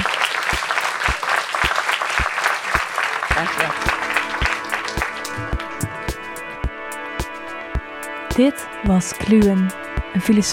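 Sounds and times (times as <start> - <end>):
audience applause: 0.0 - 6.2
speech: 3.4 - 4.0, 8.4 - 10.5.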